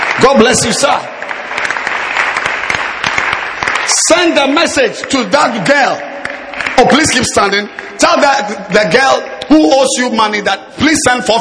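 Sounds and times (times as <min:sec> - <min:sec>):
audience clapping hands: 0:00.0 - 0:09.1
speech: 0:00.2 - 0:01.7, 0:03.9 - 0:06.1, 0:06.8 - 0:11.3.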